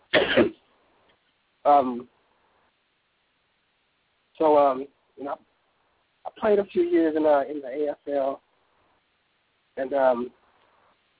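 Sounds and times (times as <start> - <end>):
speaker clearing throat and coughing during a talk: 0.1 - 0.6
speech: 1.6 - 2.2, 4.4 - 5.5, 6.4 - 8.4, 9.8 - 10.4.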